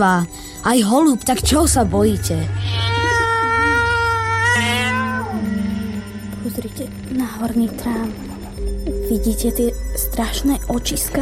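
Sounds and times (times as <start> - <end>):
speech: 0.0 - 2.9, 6.5 - 8.3, 9.1 - 11.1
cat meowing: 2.6 - 6.2.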